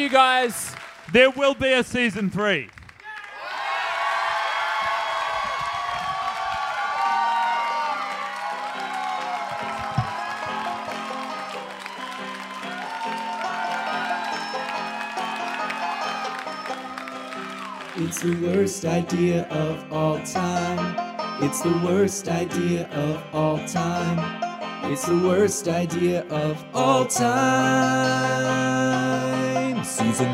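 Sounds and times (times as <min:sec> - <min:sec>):
speech: 0:00.0 - 0:02.8, 0:18.0 - 0:30.3
audience applause: 0:00.0 - 0:18.7
whoops and shouted voices: 0:03.0 - 0:16.3.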